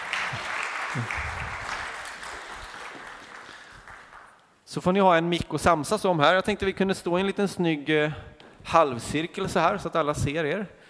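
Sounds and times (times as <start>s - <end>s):
applause: 0.0s - 4.5s
speech: 0.3s - 1.3s, 4.7s - 10.8s.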